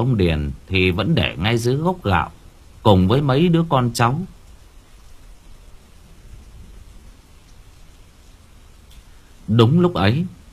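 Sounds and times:
speech: 0.0s - 4.4s, 9.5s - 10.4s
rain falling: 0.0s - 10.5s.

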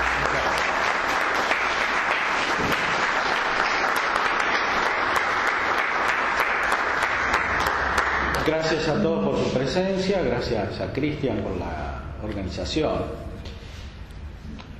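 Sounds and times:
audience applause welcoming a priest: 0.0s - 8.7s
speech: 8.5s - 13.3s.

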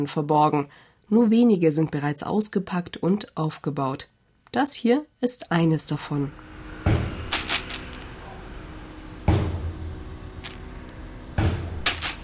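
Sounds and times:
speech: 0.0s - 6.5s
thumps on a yellow drum in a museum exhibit: 6.8s - 7.2s, 9.2s - 9.8s, 11.4s - 11.8s
wall of silver coins jingling from an air vortex: 7.3s - 8.1s, 10.4s - 10.8s, 11.8s - 12.2s.

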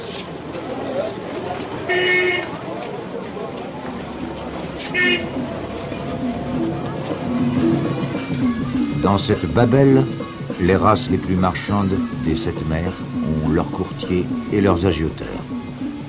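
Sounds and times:
busy traffic rumble around the stock exchange: 0.0s - 16.0s
murmur of activity: 0.0s - 16.0s
car horns honking around the stock exchange: 1.8s - 2.6s, 4.6s - 10.2s
speech: 9.2s - 15.4s.

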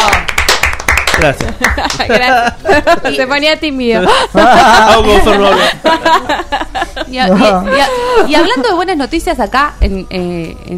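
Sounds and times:
group clapping for a swimmer: 0.0s - 2.3s
laughter: 1.2s - 3.3s, 4.0s - 8.7s
speech: 1.2s - 10.7s.

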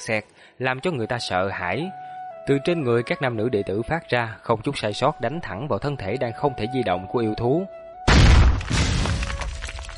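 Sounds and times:
speech: 0.0s - 7.8s
explosion blasts: 8.1s - 9.9s.

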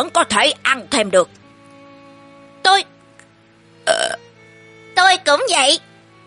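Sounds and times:
speech: 0.0s - 1.4s, 2.7s - 2.9s, 5.3s - 6.2s
voiced throaty burps: 3.8s - 4.2s.

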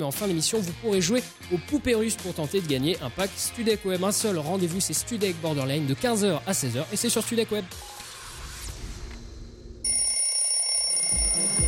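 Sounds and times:
speech: 0.0s - 8.0s
alarm clock ringing: 9.9s - 11.6s.

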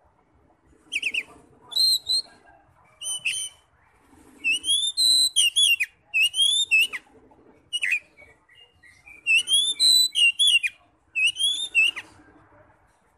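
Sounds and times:
Oriental magpie-robin whistled song: 0.8s - 3.7s, 4.4s - 7.1s, 7.7s - 12.2s.

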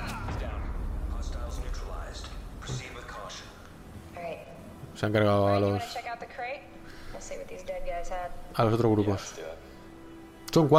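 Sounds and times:
smart grenade explosions in a video game: 0.0s - 4.1s
speech: 5.0s - 9.6s, 10.5s - 10.7s.

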